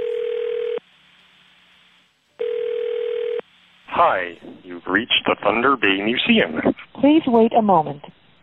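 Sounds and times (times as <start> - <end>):
outgoing phone call ring tones: 0.0 - 0.8, 2.4 - 3.4
speech: 4.0 - 8.2.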